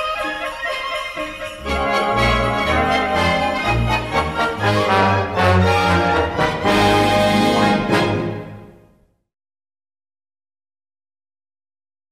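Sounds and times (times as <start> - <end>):
orchestra playing: 0.0 - 8.9.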